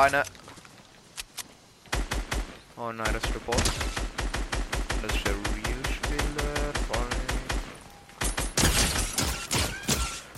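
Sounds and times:
speech: 0.0s - 0.5s, 2.8s - 4.2s, 5.0s - 5.5s
Excalibur rifle gunshots in the video game Fortnite: 3.2s - 9.9s.

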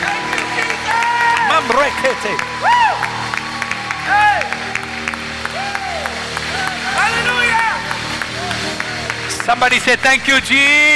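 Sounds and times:
loud rising-and-falling whoop: 0.0s - 4.6s, 5.4s - 7.2s
audience clapping: 0.0s - 10.9s
speech: 1.8s - 2.9s, 9.5s - 10.9s.

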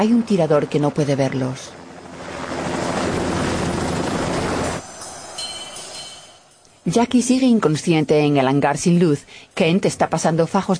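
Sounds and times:
speech: 0.0s - 1.8s, 6.9s - 10.7s
aircraft engine roar landing beside a hangar: 0.0s - 7.7s
faint tonal whine: 3.6s - 7.8s.

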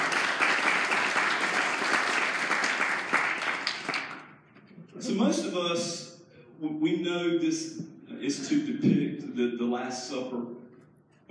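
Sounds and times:
audience hand clapping: 0.0s - 4.4s
speech: 5.2s - 10.6s.

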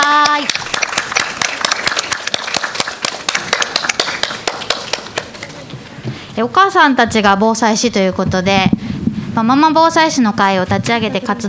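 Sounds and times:
audience applause: 0.0s - 5.7s
speech: 6.4s - 8.8s, 9.4s - 11.4s.

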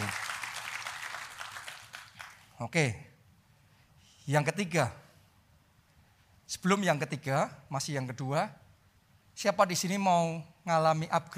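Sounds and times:
audience applauding: 0.0s - 2.5s
speech: 2.6s - 3.1s, 4.3s - 5.0s, 6.5s - 8.6s, 9.4s - 11.3s.

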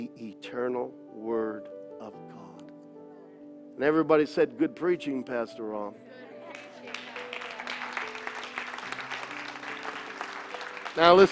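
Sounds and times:
organ-like chords: 0.0s - 11.3s
speech: 0.4s - 2.5s, 3.8s - 6.2s, 11.0s - 11.3s
audience clapping: 6.5s - 11.3s.

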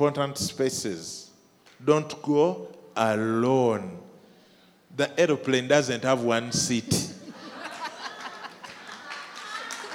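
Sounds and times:
speech: 0.0s - 1.2s, 1.8s - 4.1s, 5.0s - 7.1s
laughter: 7.0s - 9.9s
audience member clapping hands: 8.4s - 9.9s.

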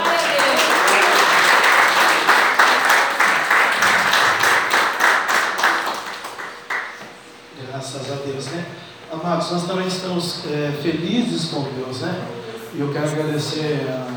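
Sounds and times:
audience clapping: 0.0s - 7.3s
speech: 9.4s - 14.1s.

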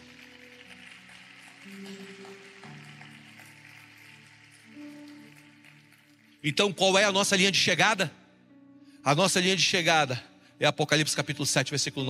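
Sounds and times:
audience applauding: 0.0s - 6.8s
speech: 1.6s - 2.1s, 6.4s - 8.2s, 9.0s - 12.0s.

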